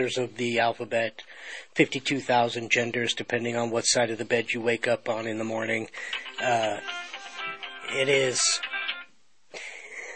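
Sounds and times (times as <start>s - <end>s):
speech: 0.0s - 7.0s, 7.9s - 8.7s
phone ringing with a bright electronic ringtone: 6.1s - 9.1s.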